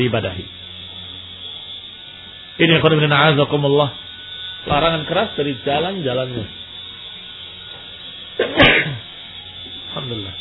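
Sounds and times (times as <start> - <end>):
speech: 0.0 - 0.6, 2.6 - 4.0, 4.6 - 6.6
sharp sneeze: 8.4 - 9.0.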